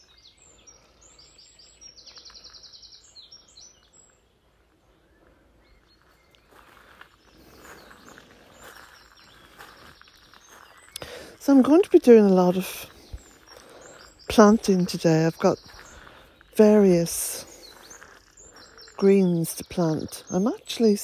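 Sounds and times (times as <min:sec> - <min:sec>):
footsteps crunching on gravel: 0:05.8 - 0:20.9
speech: 0:11.4 - 0:12.9, 0:14.4 - 0:15.8, 0:16.6 - 0:17.5, 0:19.0 - 0:21.0.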